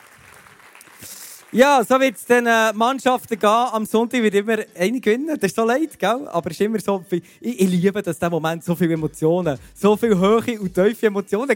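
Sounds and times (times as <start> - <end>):
audience applause: 0.0 - 3.6
speech: 1.0 - 11.5.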